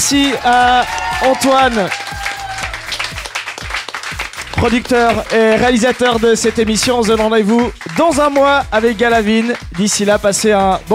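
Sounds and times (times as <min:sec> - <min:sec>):
speech: 0:00.0 - 0:02.1, 0:04.6 - 0:10.9
audience applause: 0:00.0 - 0:08.5.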